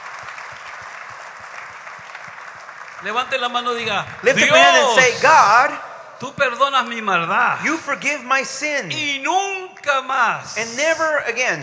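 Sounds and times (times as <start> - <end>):
congregation applause during a bilingual church service: 0.0 - 5.8
speech: 3.0 - 11.6.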